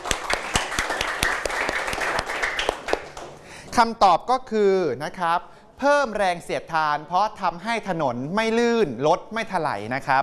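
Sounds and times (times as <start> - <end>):
classroom students applauding: 0.0 - 3.5
speech: 3.8 - 10.2.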